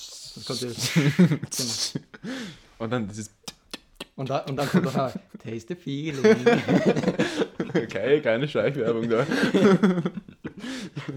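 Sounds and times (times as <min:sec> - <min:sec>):
voice imitating the fizz of a carbonated drink: 0:00.0 - 0:02.0
speech: 0:00.4 - 0:03.4, 0:04.2 - 0:10.2
laughter: 0:00.7 - 0:01.6, 0:04.2 - 0:05.4, 0:06.1 - 0:11.1.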